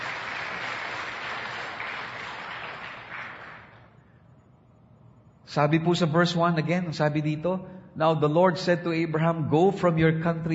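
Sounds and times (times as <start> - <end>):
audience applause: 0.0 - 3.9
speech: 5.5 - 10.5.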